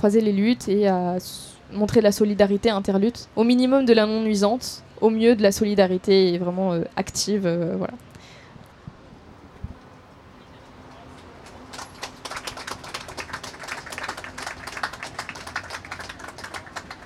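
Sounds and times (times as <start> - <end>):
speech: 0.0 - 8.1
audience applause: 11.4 - 17.0.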